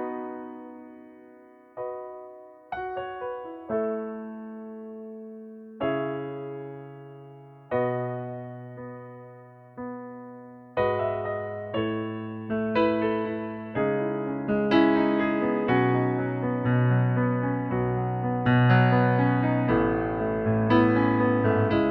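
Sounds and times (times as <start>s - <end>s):
piano playing in E major: 0.0s - 21.8s.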